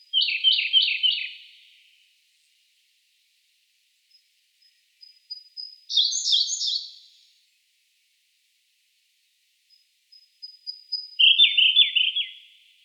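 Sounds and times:
Siberian blue robin voice: 0.0 - 1.6, 5.3 - 7.0, 10.4 - 12.6.

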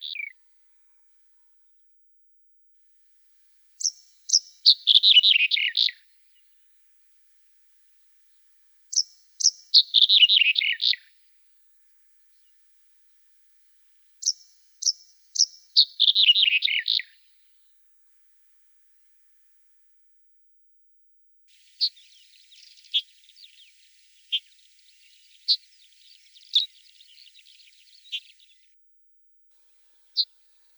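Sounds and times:
red-headed bunting voice: 3.8 - 5.9, 8.9 - 11.0, 15.4 - 17.1, 21.5 - 28.5, 30.2 - 30.7.

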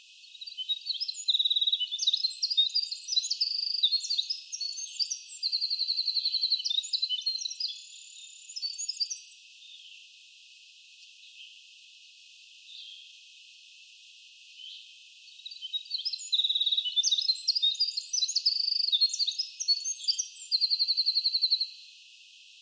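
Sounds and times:
wren singing: 0.4 - 9.3, 15.4 - 21.7.

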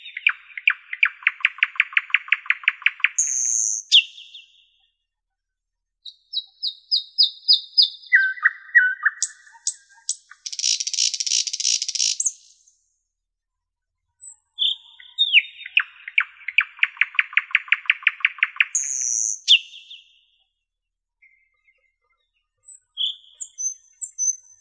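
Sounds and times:
common nightingale singing: 0.0 - 4.8, 6.0 - 12.8, 14.2 - 20.4, 22.6 - 24.5.

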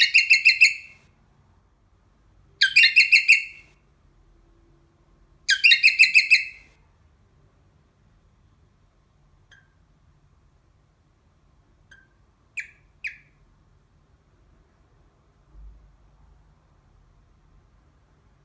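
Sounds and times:
rosella parrot voice: 0.0 - 1.0, 2.6 - 3.7, 5.5 - 6.7, 11.9 - 13.4.

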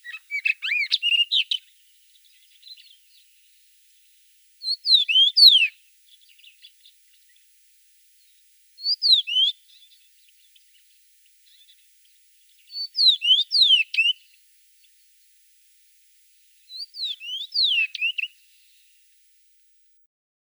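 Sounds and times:
rufous-tailed rock thrush voice: 0.0 - 3.4, 4.6 - 7.4, 8.3 - 10.9, 12.6 - 14.2, 16.7 - 18.4.

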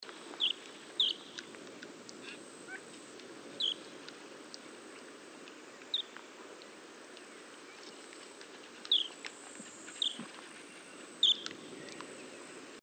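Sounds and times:
long-toed stint calling: 0.4 - 1.5, 2.2 - 4.0, 5.9 - 6.2, 8.6 - 12.4.

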